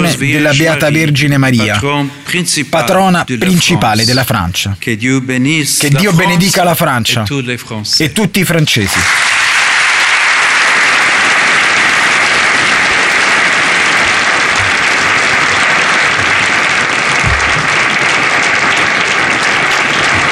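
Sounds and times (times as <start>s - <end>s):
speech: 0.2s - 9.4s
audience applause in the Salone delle Feste dell'Eliseo: 8.9s - 20.3s.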